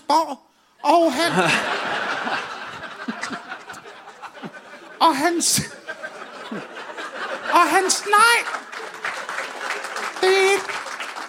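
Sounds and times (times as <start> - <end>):
speech: 0.1 - 2.4, 5.0 - 5.8, 6.5 - 6.7, 7.5 - 8.6
laughter: 1.1 - 11.2
audience clapping: 6.6 - 11.2.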